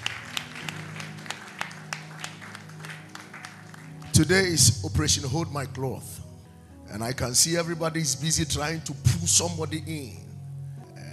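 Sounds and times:
audience clapping: 0.0 - 4.7
low sustained musical tones: 0.0 - 11.1
speech: 4.2 - 6.2, 7.0 - 10.3.

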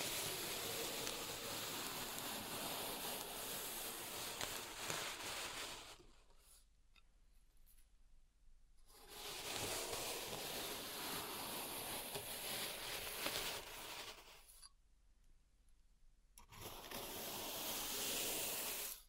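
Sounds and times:
pink salt raked in a zen garden: 0.0 - 6.6, 8.9 - 14.6, 16.6 - 19.0.

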